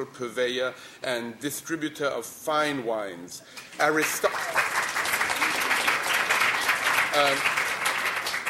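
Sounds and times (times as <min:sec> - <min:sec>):
speech: 0:00.0 - 0:04.8, 0:07.2 - 0:07.6
audience applause: 0:03.9 - 0:08.4.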